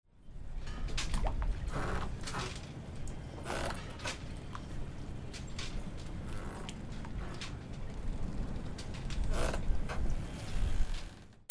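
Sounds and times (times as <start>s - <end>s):
boats: 0.2s - 11.2s.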